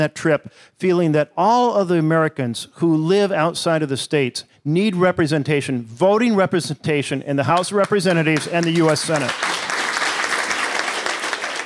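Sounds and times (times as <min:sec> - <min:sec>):
speech: 0:00.0 - 0:09.6
crowd applause: 0:08.4 - 0:11.6.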